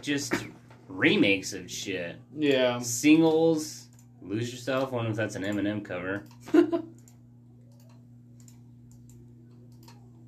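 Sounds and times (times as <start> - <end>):
speech: 0.0 - 7.0
low electrical hum: 0.0 - 10.2
computer mouse clicks: 7.0 - 10.1.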